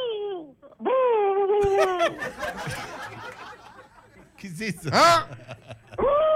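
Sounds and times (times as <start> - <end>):
person imitating owl hoots: 0.0 - 2.0
person laughing: 1.6 - 3.3, 4.7 - 6.3
speech: 1.8 - 2.8, 4.4 - 6.1.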